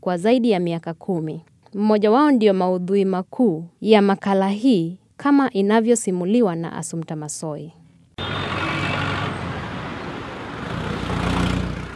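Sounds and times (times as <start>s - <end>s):
speech: 0.0s - 7.8s
morning street traffic in Yangon Myanmar with cars and motorbikes: 8.1s - 11.9s.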